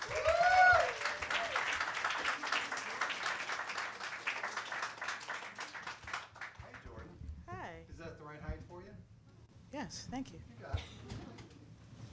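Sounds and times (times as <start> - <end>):
crowd applause: 0.0 - 7.0
speech: 9.9 - 11.0.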